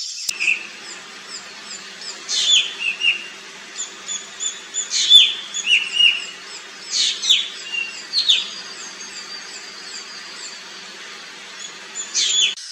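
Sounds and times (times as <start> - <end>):
birds chirping: 0.3 - 12.6
low steady hum: 0.3 - 12.6.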